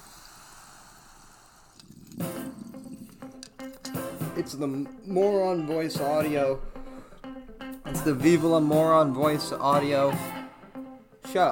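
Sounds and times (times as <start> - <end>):
gulping swallows of coffee: 0.0 - 4.4
water bubbling through a bong: 0.0 - 4.4
speech: 4.4 - 6.8, 7.9 - 10.4.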